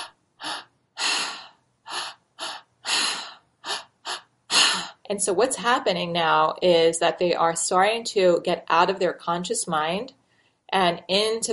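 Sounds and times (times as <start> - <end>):
person imitating active three-part breathwork breathing through the mouth: 0.0 - 5.0
speech: 5.1 - 11.5.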